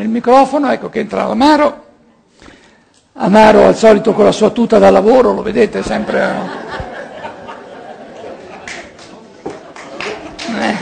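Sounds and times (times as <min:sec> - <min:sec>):
speech: 0:00.0 - 0:01.8, 0:03.2 - 0:06.9
people chuckling: 0:05.9 - 0:10.8
audience applause: 0:07.4 - 0:10.8.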